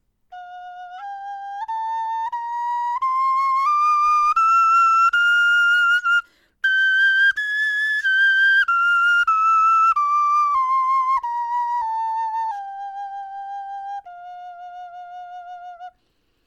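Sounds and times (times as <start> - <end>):
bone flutes playing a scale: 0.3 - 16.0.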